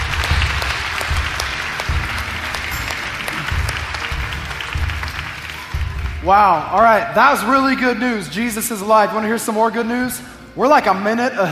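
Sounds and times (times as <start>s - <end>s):
congregation applause at an Easter Sunday church service: 0.0s - 6.9s
speech: 6.2s - 11.5s.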